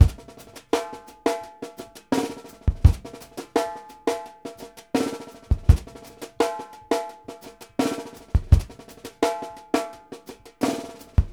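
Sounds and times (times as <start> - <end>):
drums: 0.0 - 11.3.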